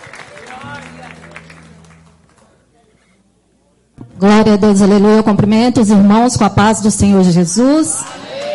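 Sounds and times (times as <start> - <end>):
audience clapping: 0.0 - 2.7
speech: 4.2 - 8.2.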